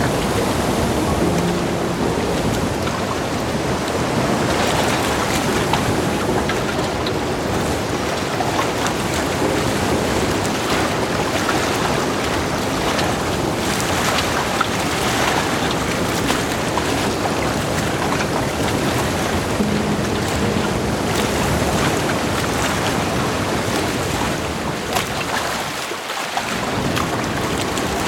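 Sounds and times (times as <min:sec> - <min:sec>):
wind and waves rushing on a sailing trip: 0:00.0 - 0:28.0.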